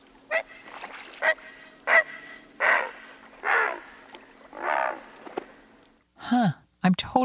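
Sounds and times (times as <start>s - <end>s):
faint steady hum: 0.0s - 7.2s
great blue heron giving harsh hoarse croaking squawks: 0.3s - 5.8s.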